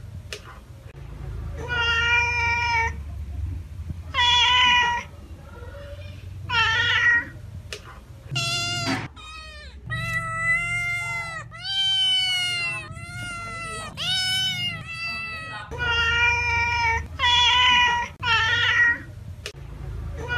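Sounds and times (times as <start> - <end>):
domestic cat giving drawn-out meows: 1.6 - 3.0, 4.1 - 5.1, 6.5 - 7.4, 8.3 - 19.1.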